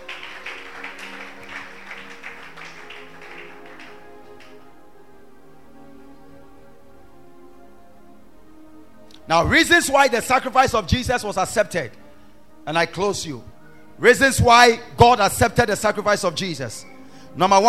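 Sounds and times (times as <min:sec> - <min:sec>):
audience clapping hands: 0:00.0 - 0:04.8
speech: 0:09.3 - 0:12.0, 0:12.7 - 0:17.6.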